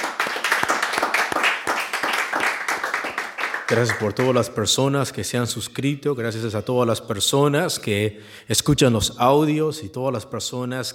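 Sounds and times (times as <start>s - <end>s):
audience clapping hands: 0.0s - 4.6s
speech: 3.7s - 10.9s.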